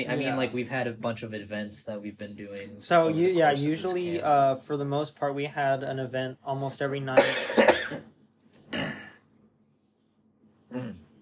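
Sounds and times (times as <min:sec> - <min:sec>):
speech: 0:00.0 - 0:08.8
raspy person coughing: 0:07.2 - 0:08.1, 0:08.7 - 0:09.2.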